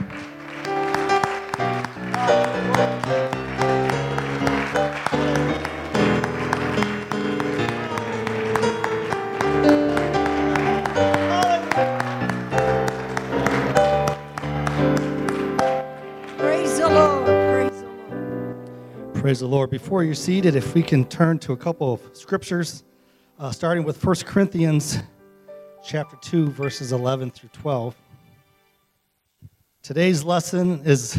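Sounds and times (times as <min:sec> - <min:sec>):
audience clapping hands in praise: 0:00.0 - 0:17.8
sustained organ or keyboard chords: 0:00.0 - 0:31.1
speech: 0:19.3 - 0:25.1, 0:25.8 - 0:28.0, 0:29.8 - 0:31.1.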